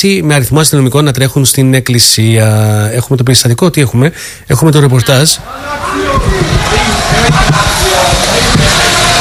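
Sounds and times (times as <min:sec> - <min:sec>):
speech: 0:00.0 - 0:09.0
crowd shouting in a church: 0:05.3 - 0:09.1.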